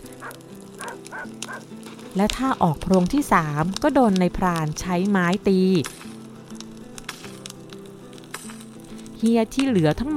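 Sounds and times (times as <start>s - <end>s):
dog barking: 0.2s - 1.6s
speech: 1.1s - 6.1s, 9.2s - 10.1s.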